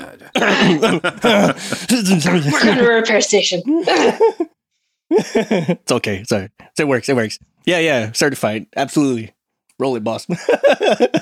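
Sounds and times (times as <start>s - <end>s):
person fake coughing: 0.0s - 1.0s, 2.2s - 3.0s, 3.8s - 4.4s
laughter: 0.0s - 3.1s, 3.7s - 5.8s, 10.3s - 11.2s
speech: 0.2s - 4.5s, 5.1s - 11.2s.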